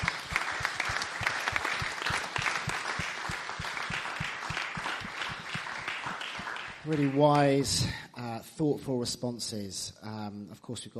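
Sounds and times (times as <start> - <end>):
audience applause for a panel: 0.0 - 7.6
speech: 6.9 - 8.0, 8.6 - 10.9.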